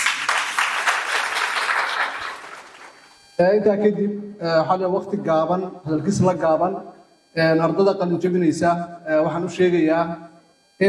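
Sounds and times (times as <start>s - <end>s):
audience applause at a graduation ceremony: 0.0s - 3.0s
speech: 3.4s - 10.2s.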